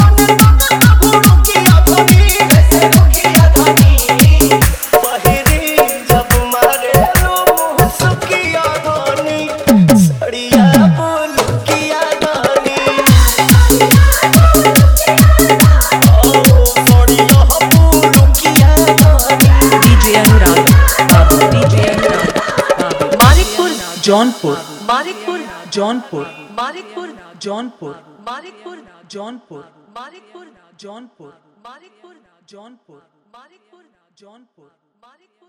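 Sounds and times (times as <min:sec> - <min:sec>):
hard dholki bass jhankar remix: 0:00.0 - 0:22.4, 0:23.2 - 0:25.9.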